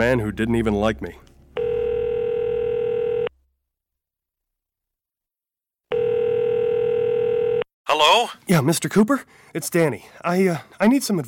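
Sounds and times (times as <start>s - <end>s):
speech: 0.0s - 1.3s, 8.0s - 11.2s
telephone dial tone: 1.6s - 3.3s, 5.9s - 7.7s.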